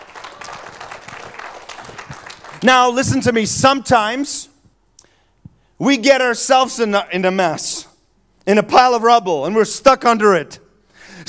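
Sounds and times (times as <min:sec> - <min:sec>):
crowd clapping: 0:00.0 - 0:03.4
speech: 0:02.6 - 0:04.5, 0:05.8 - 0:07.9, 0:08.5 - 0:10.6.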